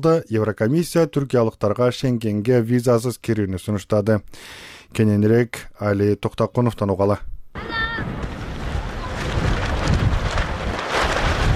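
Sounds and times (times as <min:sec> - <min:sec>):
speech: 0:00.0 - 0:08.1
strong gusting wind at a refugee tent camp: 0:07.6 - 0:11.5.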